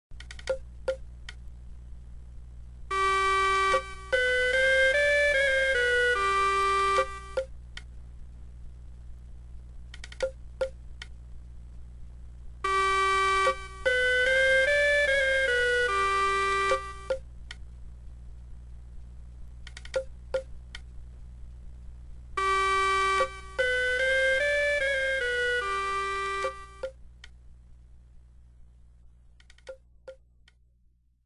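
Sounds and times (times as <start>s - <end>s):
music: 2.9s - 7.5s, 12.6s - 17.2s, 22.4s - 27.0s.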